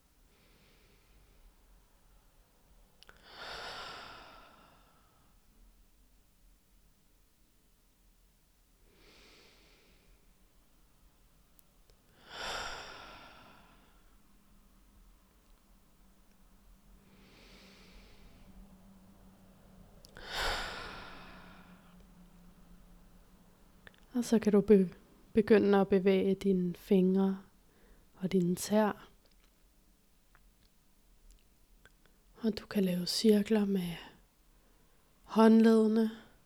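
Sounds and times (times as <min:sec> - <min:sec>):
slow deep breaths: 0:00.2 - 0:02.2, 0:03.0 - 0:05.5, 0:08.8 - 0:10.9, 0:12.1 - 0:24.1, 0:27.5 - 0:28.2
speech: 0:24.2 - 0:27.5, 0:28.2 - 0:29.1, 0:32.4 - 0:34.1, 0:35.3 - 0:36.2.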